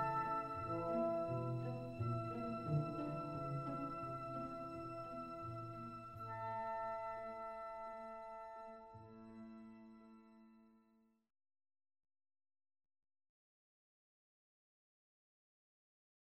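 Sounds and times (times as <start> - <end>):
piano: 0.0 - 10.6.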